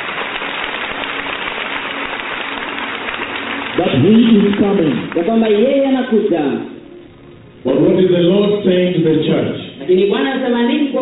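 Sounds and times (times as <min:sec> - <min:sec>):
audience clapping: 0:00.0 - 0:06.2
speech: 0:03.8 - 0:06.7, 0:07.6 - 0:10.9.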